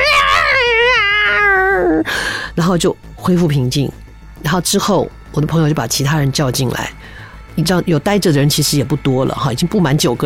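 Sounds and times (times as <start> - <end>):
pitiful cat yowling: 0.0 - 2.1
speech: 2.6 - 10.2.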